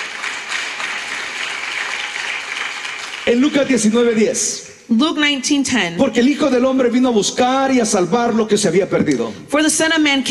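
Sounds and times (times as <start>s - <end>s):
audience applause: 0.0s - 4.4s
speech: 3.3s - 10.2s.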